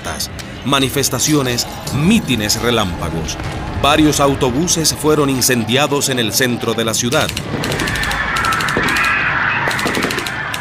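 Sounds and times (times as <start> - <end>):
speech: 0.2 - 8.0
machine gun fire: 7.4 - 10.5.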